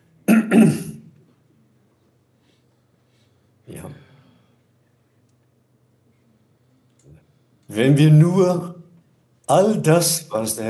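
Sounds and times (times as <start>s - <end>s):
preacher clearing throat during a German sermon: 0.2s - 1.1s
speech: 0.5s - 0.8s, 7.8s - 8.8s, 9.5s - 10.6s.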